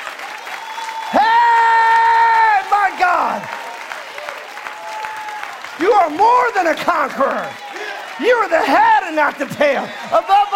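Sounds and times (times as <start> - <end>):
church congregation clapping hands in praise: 0.0 - 10.5
speech: 6.1 - 7.6, 8.2 - 10.5.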